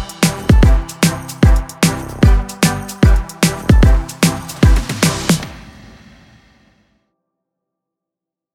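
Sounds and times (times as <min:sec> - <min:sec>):
holiday music beat in G major at 150 BPM: 0:00.0 - 0:05.6.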